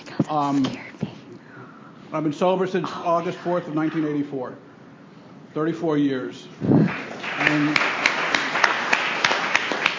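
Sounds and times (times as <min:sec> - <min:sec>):
speech: 0:00.3 - 0:00.9, 0:02.1 - 0:04.7, 0:05.5 - 0:07.9
audience applause: 0:06.8 - 0:09.9.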